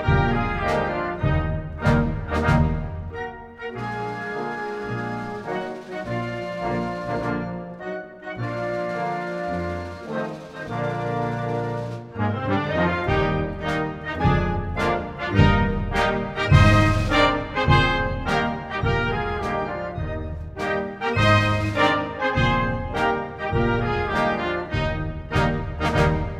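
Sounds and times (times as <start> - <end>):
national anthem music: 0.0 - 26.3.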